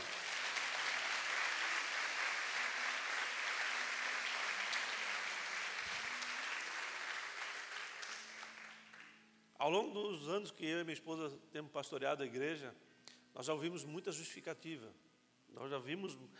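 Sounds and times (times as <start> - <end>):
audience applause: 0.0 - 9.2
speech: 9.6 - 16.3.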